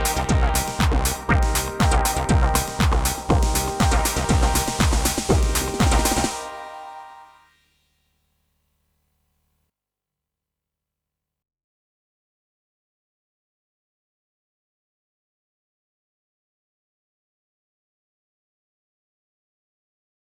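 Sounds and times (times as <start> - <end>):
bass: 0.0 - 6.4
TR drum machine: 0.0 - 6.9
filtered organ chord stab: 0.0 - 7.4.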